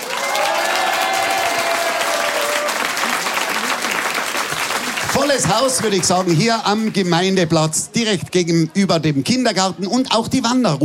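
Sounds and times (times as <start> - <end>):
outdoor audience applause: 0.0 - 7.4
speech: 5.3 - 10.8.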